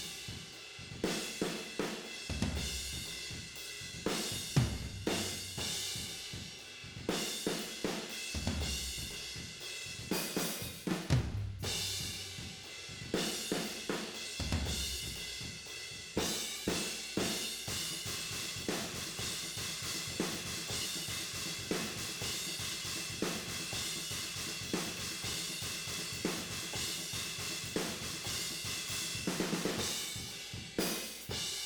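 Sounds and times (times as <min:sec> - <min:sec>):
tom drums with overheads and room: 0:00.0 - 0:31.6.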